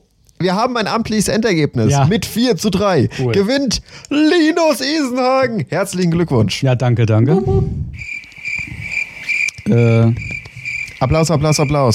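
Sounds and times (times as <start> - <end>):
speech: 0.4 - 8.1, 9.6 - 10.4, 11.0 - 11.9
cricket chirping: 8.0 - 11.9.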